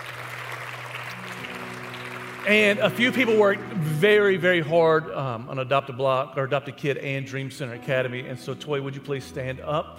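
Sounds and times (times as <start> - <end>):
audience clapping: 0.0 - 4.3
speech: 2.4 - 9.9.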